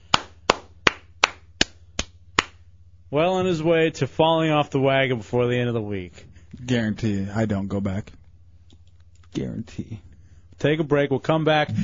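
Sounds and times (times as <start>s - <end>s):
slow hand claps greeting a person being congratulated: 0.0s - 2.7s
faint low hum: 0.0s - 11.8s
speech: 3.1s - 8.2s, 9.3s - 11.8s.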